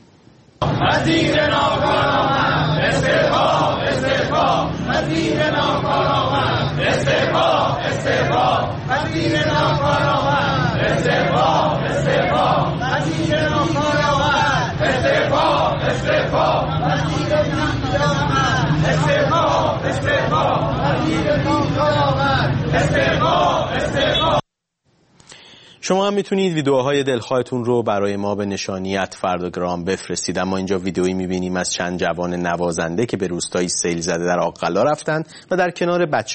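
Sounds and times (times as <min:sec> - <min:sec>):
protesting teachers chanting outside the Education Ministry in Tehran: 0:00.6 - 0:24.4
speech: 0:00.8 - 0:02.0, 0:25.9 - 0:36.3.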